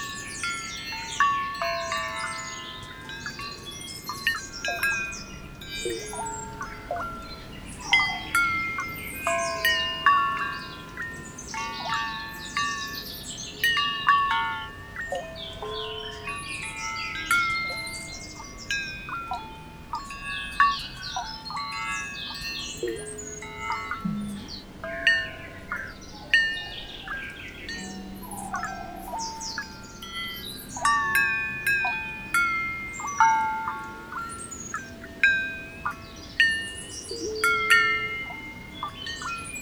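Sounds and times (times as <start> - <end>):
birds: 0.0 - 39.5
water: 0.0 - 39.5.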